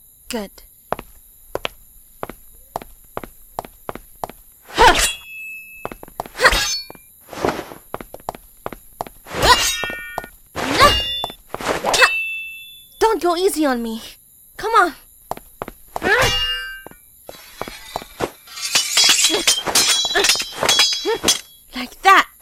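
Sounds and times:
speech: 0.3 - 0.7, 13.3 - 15.0
swords clashing in a fight: 4.7 - 5.6, 6.4 - 7.0, 9.3 - 12.6, 16.0 - 21.6.

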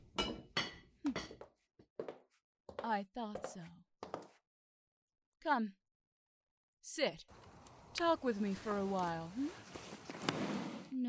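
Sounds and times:
dishes clinking and clattering during kitchen chores: 0.1 - 1.5
speech: 2.8 - 3.8, 5.4 - 5.8, 6.8 - 10.4.

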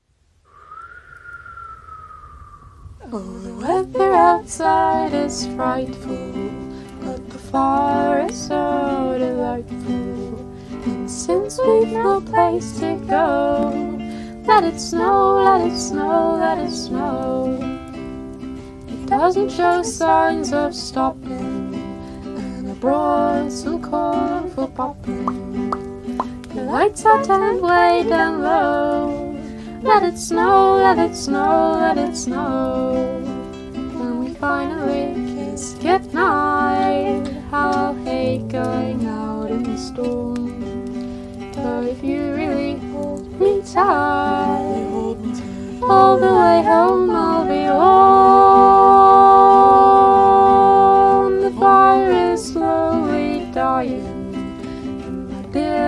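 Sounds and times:
person singing: 3.0 - 17.9, 19.0 - 55.8.

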